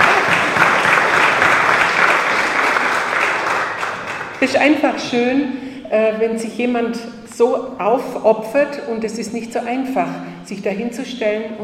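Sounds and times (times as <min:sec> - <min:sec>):
audience applause: 0:00.0 - 0:04.5
speech: 0:04.4 - 0:11.6.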